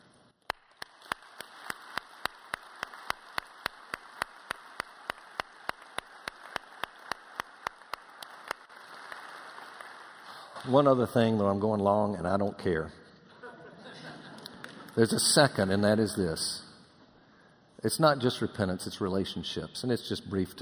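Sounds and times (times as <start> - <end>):
audience applause: 0.5 - 10.8
speech: 10.6 - 13.0, 15.0 - 16.6, 17.8 - 20.6
laughter: 13.3 - 14.8.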